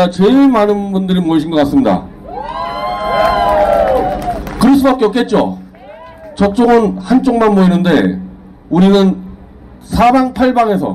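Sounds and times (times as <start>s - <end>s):
speech: 0.0s - 2.6s, 4.8s - 5.6s, 6.4s - 9.2s, 9.8s - 10.9s
large rally crowd cheering and shouting: 2.3s - 4.5s.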